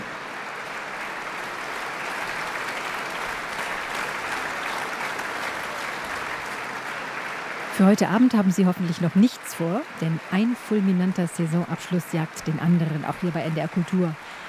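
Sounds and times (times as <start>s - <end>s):
audience applause: 0.0s - 14.4s
speech: 7.8s - 14.4s.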